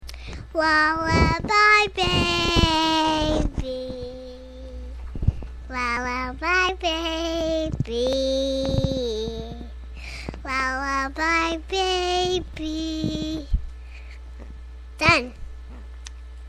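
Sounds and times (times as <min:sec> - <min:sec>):
lullaby: 0:00.2 - 0:05.0, 0:05.7 - 0:09.8, 0:10.4 - 0:13.5.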